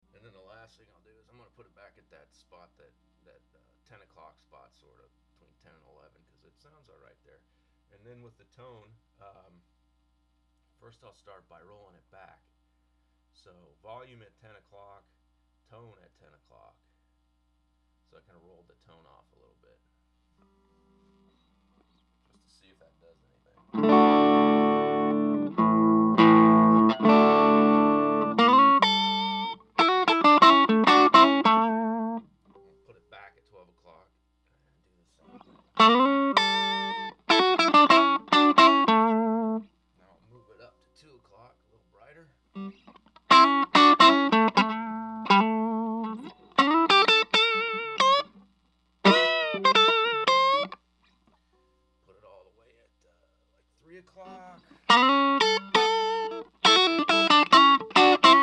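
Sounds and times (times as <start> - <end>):
Vox 4W guitar amplifier tone control: 23.5 - 33.1, 35.2 - 39.7, 42.6 - 50.8, 54.2 - 58.4.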